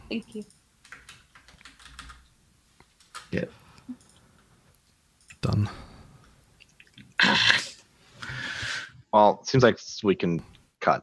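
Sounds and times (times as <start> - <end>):
speech: 0.1 - 0.6, 3.3 - 4.0, 5.6 - 5.8, 9.2 - 11.0
typing on a computer keyboard: 0.3 - 2.3, 2.9 - 4.2.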